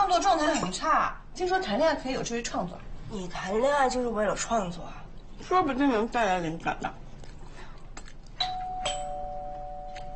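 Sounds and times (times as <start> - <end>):
speech: 0.2 - 7.0
doorbell ding-dong: 8.4 - 10.1.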